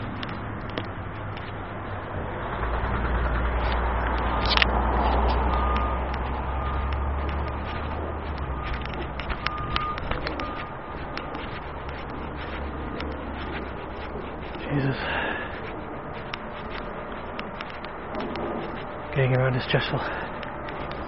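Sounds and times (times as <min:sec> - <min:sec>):
bus brakes squealing: 0:00.0 - 0:21.0
bus engine rumble as it pulls up: 0:00.0 - 0:21.0
street noise: 0:00.0 - 0:21.0
speech: 0:19.5 - 0:20.2.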